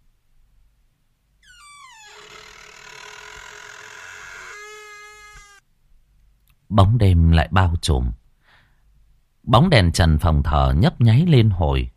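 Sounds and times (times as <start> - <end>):
door hinges creaking: 1.4 - 5.6
speech: 6.7 - 8.2, 9.5 - 11.9.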